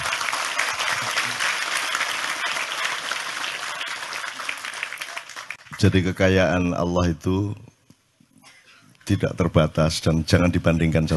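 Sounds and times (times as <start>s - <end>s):
audience applause: 0.0s - 5.8s
speech: 5.8s - 7.7s, 9.1s - 11.1s.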